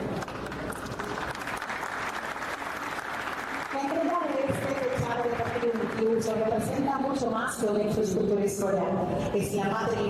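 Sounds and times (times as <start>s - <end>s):
audience applause: 0.2s - 6.1s
speech: 6.0s - 10.0s.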